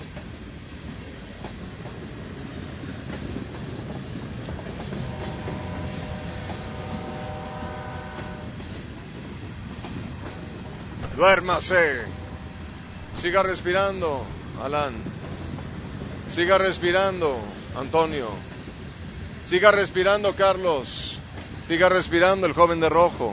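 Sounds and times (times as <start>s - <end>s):
train rolling on railway tracks: 0.0s - 23.3s
thin tonal whine: 11.0s - 15.1s
speech: 11.2s - 12.1s, 13.2s - 15.2s, 16.4s - 18.5s, 19.5s - 21.1s, 21.7s - 23.3s.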